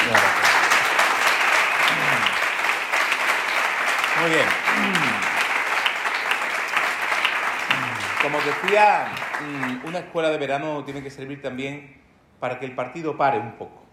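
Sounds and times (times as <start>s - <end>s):
audience applause: 0.0s - 10.0s
speech: 8.3s - 13.8s.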